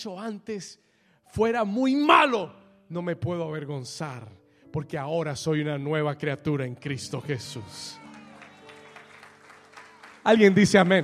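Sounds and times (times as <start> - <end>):
speech: 0.0 - 8.0, 10.2 - 11.0
audience applause: 7.9 - 11.0.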